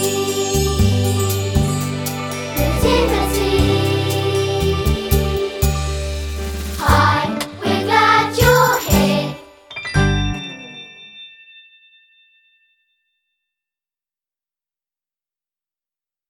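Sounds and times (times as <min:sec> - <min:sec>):
vocals: 0:00.0 - 0:09.7.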